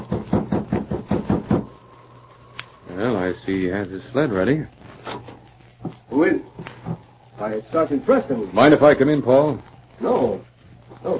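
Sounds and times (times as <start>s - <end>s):
knuckles knocking on a cabin door: 0.1s - 1.6s
speech: 3.0s - 4.8s, 6.1s - 6.6s, 7.4s - 11.1s.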